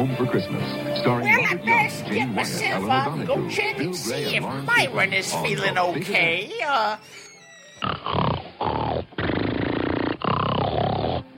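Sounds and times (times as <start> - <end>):
speech: 0.0 - 7.2, 7.8 - 8.8
man snoring: 7.8 - 11.3.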